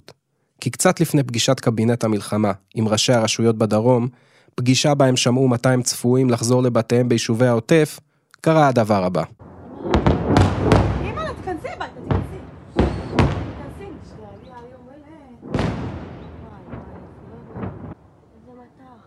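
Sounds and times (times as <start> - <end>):
speech: 0.6 - 10.1
barrage of heavy rocket launches: 9.4 - 14.2, 15.4 - 18.0
voices calling out: 9.5 - 19.0.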